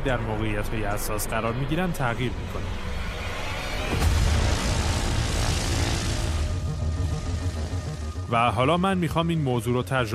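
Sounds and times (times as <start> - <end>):
speech: 0.0 - 3.0, 3.9 - 4.2, 8.3 - 10.1
airplane engine and cabin noise carrying skydivers up to 4000 metres: 0.0 - 10.1.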